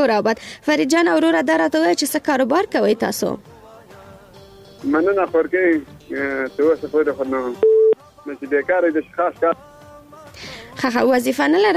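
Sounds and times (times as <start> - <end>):
speech: 0.0 - 3.5, 4.8 - 9.7, 10.4 - 11.7
telephone beep as a call is cut off: 7.5 - 8.0.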